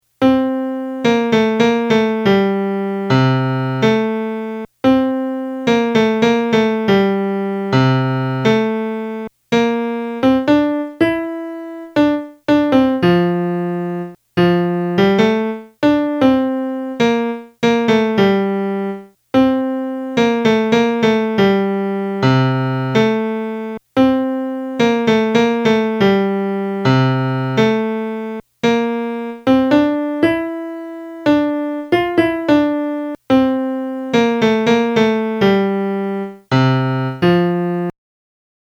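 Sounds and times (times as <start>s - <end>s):
melody: 0.2s - 37.9s.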